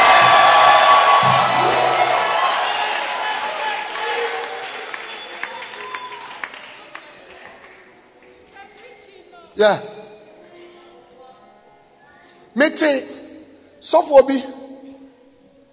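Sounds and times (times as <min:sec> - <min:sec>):
audience whooping and shouting: 0:00.0 - 0:07.6
audience clapping: 0:00.0 - 0:09.0
speech: 0:09.6 - 0:09.9, 0:12.6 - 0:13.2, 0:13.8 - 0:14.6.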